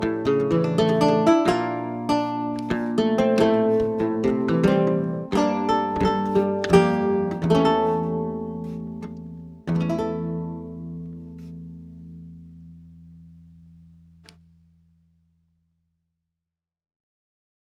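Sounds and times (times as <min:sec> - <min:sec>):
lute: 0:00.0 - 0:13.3.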